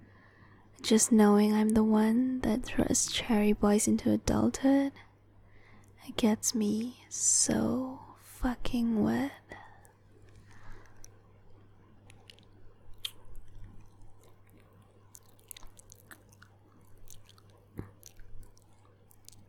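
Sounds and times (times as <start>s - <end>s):
low steady hum: 0.0s - 19.4s
speech: 0.8s - 5.1s, 6.1s - 9.6s
wet mouth sounds of nibbling, licking and sucking on an ear: 12.0s - 19.4s.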